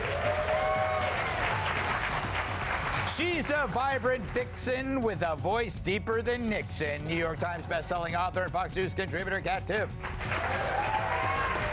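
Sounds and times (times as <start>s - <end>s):
high tonal cheer or whistle: 0.0s - 2.1s, 10.3s - 11.7s
crowd applauding: 0.0s - 4.6s, 10.0s - 11.7s
speech: 3.1s - 10.8s.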